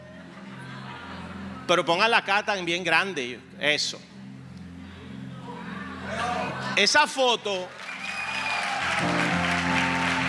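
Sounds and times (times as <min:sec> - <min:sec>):
laughter: 0:00.0 - 0:01.9, 0:05.4 - 0:07.0
speech: 0:01.7 - 0:04.1, 0:06.8 - 0:07.8
church audience applause during a sermon: 0:07.7 - 0:10.2.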